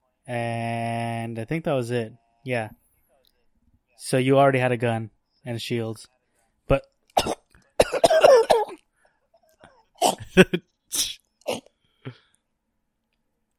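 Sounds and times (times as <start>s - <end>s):
speech: 0.3s - 2.8s, 4.0s - 7.4s, 10.4s - 11.0s
person coughing after swallowing a bug: 7.2s - 8.8s, 10.0s - 11.7s.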